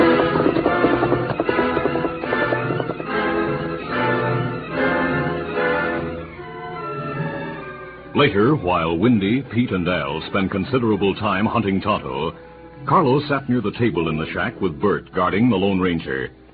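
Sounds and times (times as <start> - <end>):
horse galloping: 0.0 - 4.9
loud dense musical score: 0.0 - 11.6
speech: 8.2 - 16.4.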